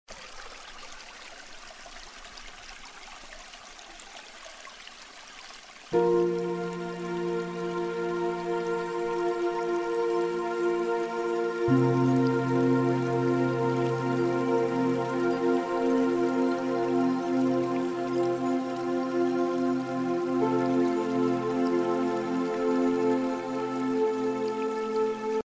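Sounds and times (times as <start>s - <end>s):
meditation music: 6.0s - 25.4s.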